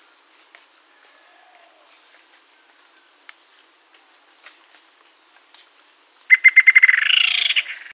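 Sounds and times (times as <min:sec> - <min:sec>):
steady high insect hum: 0:00.0 - 0:07.9
bird trilling call: 0:06.3 - 0:07.9.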